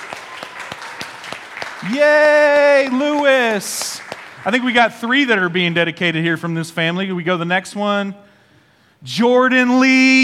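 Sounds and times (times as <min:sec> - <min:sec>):
audience applause for a child at a family dedication ceremony: 0:00.0 - 0:05.0
speech: 0:01.8 - 0:08.3, 0:09.0 - 0:10.2.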